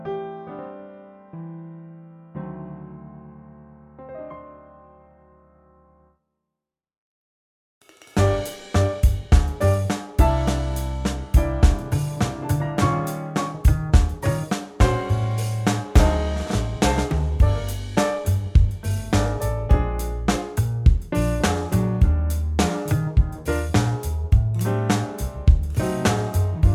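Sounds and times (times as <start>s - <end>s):
groove music: 7.9s - 26.7s.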